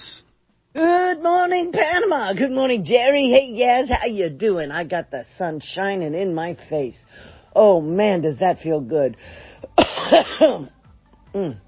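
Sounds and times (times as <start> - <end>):
speech: 1.5 - 11.6
person coughing hoarse chesty coughs: 9.6 - 10.8.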